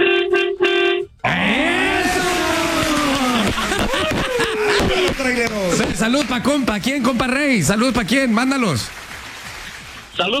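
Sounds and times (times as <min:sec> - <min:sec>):
truck horn honking: 0:00.0 - 0:01.5
laughter: 0:01.3 - 0:06.7
speech: 0:05.3 - 0:09.0, 0:10.2 - 0:10.3.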